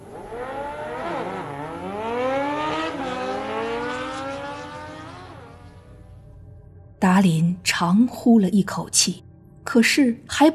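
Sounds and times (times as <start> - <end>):
car starting and speeding off toward Vallejo at night: 0.0 - 6.4
speech: 7.1 - 10.5.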